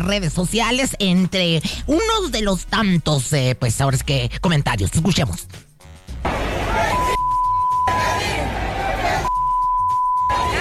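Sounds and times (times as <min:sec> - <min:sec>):
speech: 0:00.0 - 0:05.7
audience crowd coming down the stairs at La Esfera: 0:06.2 - 0:10.5
steady high beep tone: 0:06.9 - 0:08.0, 0:09.3 - 0:10.5.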